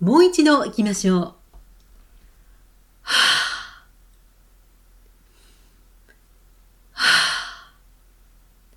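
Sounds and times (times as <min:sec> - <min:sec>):
speech: 0:00.0 - 0:01.4, 0:03.1 - 0:03.4
slow deep breaths during an abdominal breathing exercise: 0:02.4 - 0:03.9, 0:05.2 - 0:05.9, 0:07.0 - 0:07.8.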